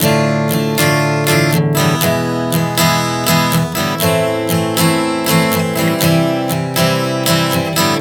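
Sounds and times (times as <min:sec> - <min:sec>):
acoustic guitar chord progression D-E-Am-C: 0:00.0 - 0:07.9.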